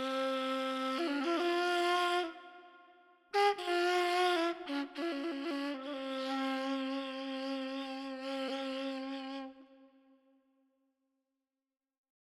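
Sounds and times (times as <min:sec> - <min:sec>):
ney flute playing Persian classical radif: 0:00.0 - 0:09.8.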